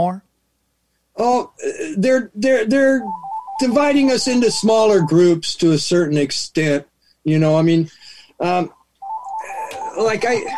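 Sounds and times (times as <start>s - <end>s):
speech: 1.2s - 8.8s, 10.0s - 10.5s
phone ringtone with a steady electronic tone: 2.8s - 5.3s, 9.0s - 10.5s.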